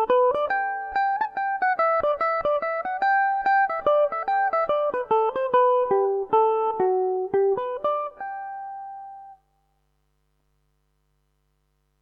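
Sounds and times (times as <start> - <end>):
mandolin tune in G major: 0.0 - 9.4.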